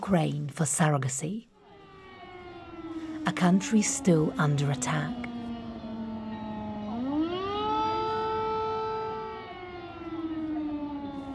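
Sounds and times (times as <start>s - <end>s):
speech: 0.1s - 1.5s, 3.2s - 5.3s
air raid alarm siren: 1.5s - 11.3s.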